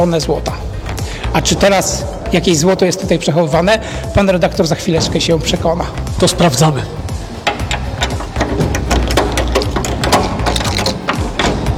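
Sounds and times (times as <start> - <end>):
speech: 0.0 - 0.7, 1.3 - 7.1
vault door locking bar being unbolted: 7.4 - 11.7.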